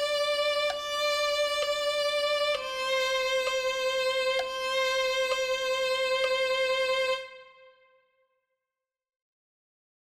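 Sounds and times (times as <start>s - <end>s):
violin playing: 0.0s - 8.0s.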